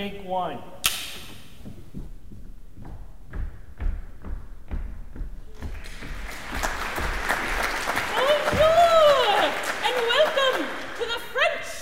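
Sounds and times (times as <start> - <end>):
speech: 0.0 - 0.8
thumps and knocks: 1.1 - 6.2
studio audience applause at a TV cooking show taping: 5.6 - 11.4.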